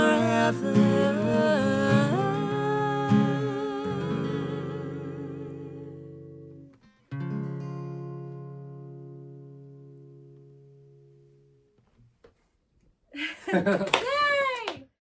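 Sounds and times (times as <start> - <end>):
live acoustic cover song: 0.0 - 9.9
laughter: 13.2 - 14.2.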